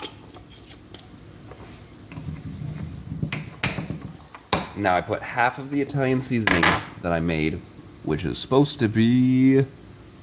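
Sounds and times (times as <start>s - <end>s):
spoon scraping and clinking against a bowl while mixing oregano into food: 2.1s - 4.0s
speech: 4.8s - 9.8s.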